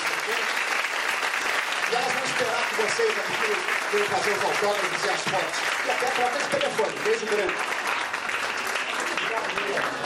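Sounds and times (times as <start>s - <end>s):
audience applause: 0.0s - 10.0s
speech: 2.0s - 7.8s.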